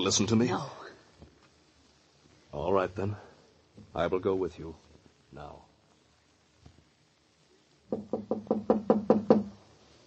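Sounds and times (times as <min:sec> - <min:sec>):
speech: 0:00.0 - 0:00.8, 0:02.5 - 0:05.7, 0:07.9 - 0:08.8
knocking on a door: 0:07.9 - 0:09.6.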